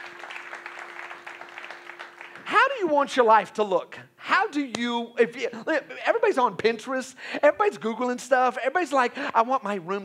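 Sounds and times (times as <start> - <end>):
audience clapping hands: 0.0 - 2.9
speech: 2.8 - 10.0.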